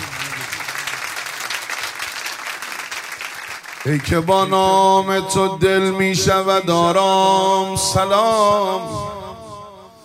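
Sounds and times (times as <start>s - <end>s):
audience clapping: 0.0s - 5.0s
speech: 3.8s - 9.2s.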